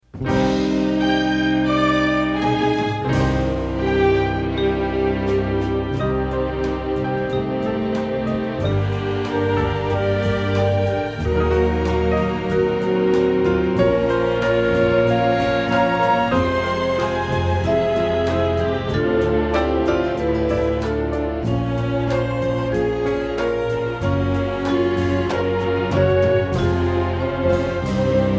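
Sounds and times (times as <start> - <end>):
stereo band track: 0.0 - 28.3.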